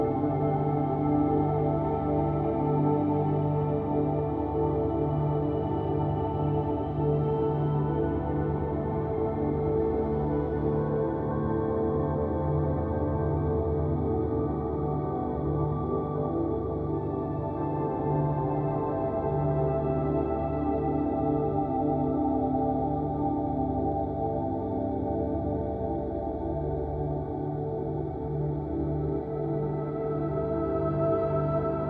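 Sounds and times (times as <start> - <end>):
warm angelic ambient music: 0.0 - 31.8.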